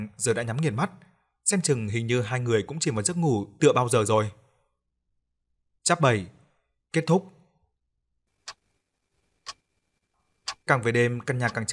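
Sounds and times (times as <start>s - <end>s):
speech: 0.0s - 4.4s, 5.8s - 7.4s, 10.7s - 11.7s
clock ticking: 8.4s - 8.6s, 9.4s - 9.6s, 10.5s - 11.7s.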